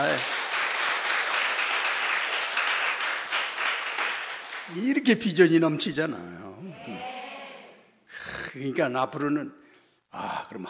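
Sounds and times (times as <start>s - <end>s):
speech: 0.0s - 0.4s, 4.7s - 7.1s, 8.5s - 10.6s
audience applauding: 0.0s - 5.0s.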